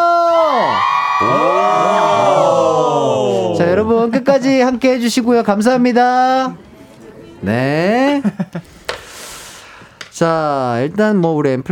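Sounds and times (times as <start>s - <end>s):
fans shouting and cheering: 0.0s - 3.8s
speech: 4.0s - 6.7s, 7.4s - 8.7s, 10.2s - 11.7s.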